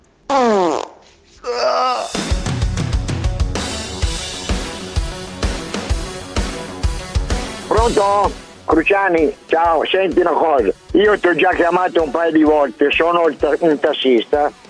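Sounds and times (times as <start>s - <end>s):
loud buzzy farts: 0.3s - 1.2s
rhythmic music track: 2.1s - 14.6s
speech: 7.9s - 14.6s.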